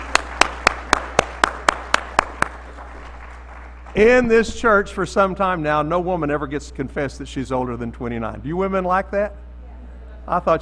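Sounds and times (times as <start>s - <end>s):
audience clapping: 0.0s - 4.8s
speech: 4.0s - 9.4s, 10.3s - 10.6s.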